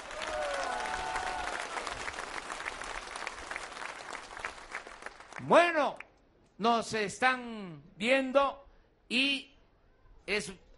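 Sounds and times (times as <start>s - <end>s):
audience applause for migrants: 0.0s - 5.5s
speech: 5.4s - 6.0s, 6.6s - 9.5s, 10.3s - 10.6s.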